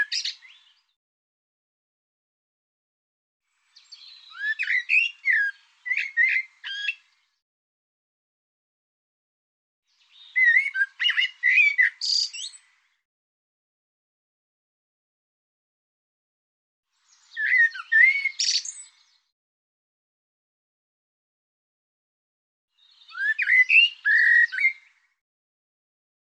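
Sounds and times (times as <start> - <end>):
bird singing: 0.0 - 1.0, 3.7 - 7.4, 9.9 - 13.0, 17.1 - 19.3, 22.8 - 25.2.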